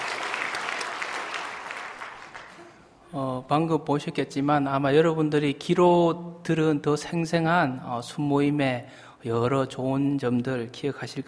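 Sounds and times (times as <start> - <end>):
audience applause: 0.0 - 2.8
speech: 3.1 - 11.2.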